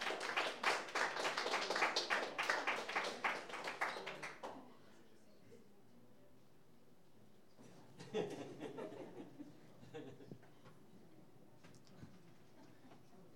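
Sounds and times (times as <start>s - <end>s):
audience applause welcoming musicians: 0.0s - 4.6s
laughter: 7.9s - 10.5s.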